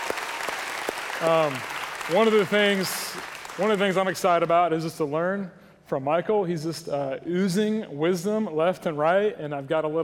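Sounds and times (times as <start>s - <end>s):
crowd applause: 0.0s - 4.4s
speech: 1.2s - 10.0s.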